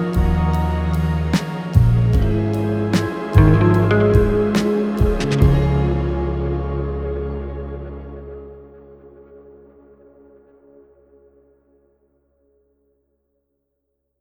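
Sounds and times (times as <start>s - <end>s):
trip hop music: 0.0s - 6.9s.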